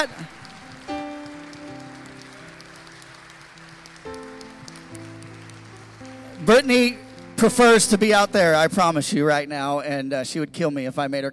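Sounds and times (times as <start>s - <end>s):
speech: 0.0s - 0.3s, 6.4s - 11.3s
audience hand clapping: 0.0s - 9.0s.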